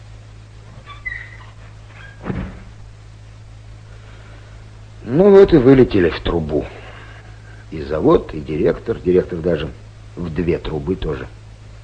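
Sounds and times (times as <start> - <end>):
steady low hum: 0.0 - 11.8
door squeaking and thudding shut as it is closed and latched: 0.7 - 2.8
speech: 5.1 - 6.8, 7.7 - 11.4.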